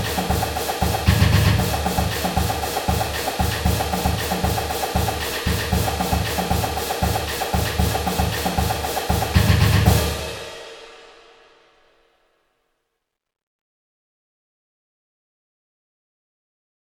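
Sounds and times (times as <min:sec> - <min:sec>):
marching drumline playing pep music: 0:00.0 - 0:10.7.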